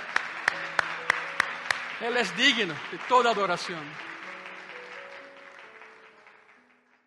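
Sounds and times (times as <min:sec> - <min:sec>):
audience applauding: 0:00.0 - 0:07.0
speech: 0:02.0 - 0:04.1.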